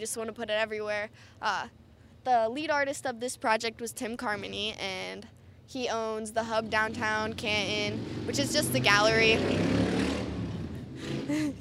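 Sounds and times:
speech: 0.0s - 10.0s, 11.0s - 11.5s
motorcycle engine rumbling: 6.3s - 11.5s.

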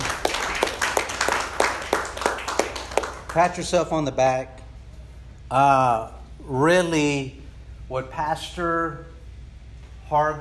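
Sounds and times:
audience clapping: 0.0s - 3.8s
speech: 3.4s - 4.6s, 5.5s - 9.1s, 10.1s - 10.4s.

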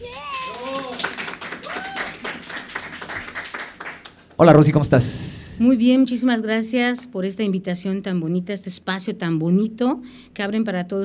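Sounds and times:
audience applause: 0.0s - 4.4s
speech: 4.4s - 11.0s.

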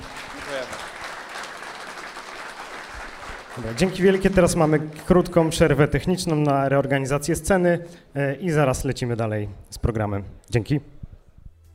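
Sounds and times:
audience applause: 0.0s - 6.5s
speech: 0.5s - 1.0s, 3.6s - 11.0s.

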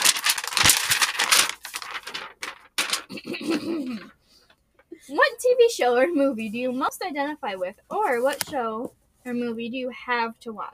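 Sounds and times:
paper being flipped over noisily: 0.0s - 3.2s
speech: 3.1s - 4.2s, 5.1s - 10.7s.

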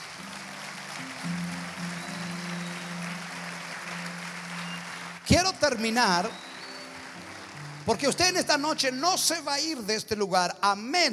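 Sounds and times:
audience applause: 0.0s - 9.8s
speech: 5.3s - 6.4s, 7.9s - 11.1s.

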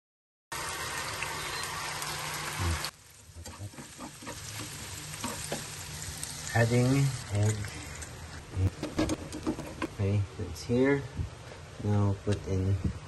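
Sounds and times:
tofu frying in ghee and extra virgin olive oil: 0.5s - 10.0s
speech: 6.6s - 7.8s, 8.6s - 8.9s, 10.0s - 13.0s.

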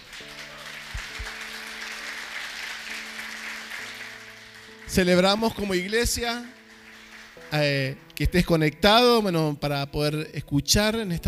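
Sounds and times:
church audience applause: 0.0s - 7.6s
speech: 4.9s - 6.6s, 7.5s - 11.2s.

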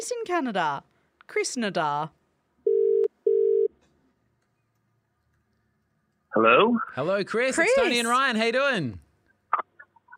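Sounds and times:
speech: 0.0s - 2.2s, 6.3s - 9.0s
telephone ringing: 2.7s - 3.7s.

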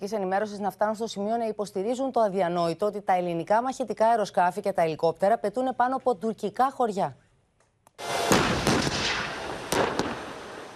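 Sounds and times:
speech: 0.0s - 7.2s
tank gun salvo fire: 8.3s - 10.7s.

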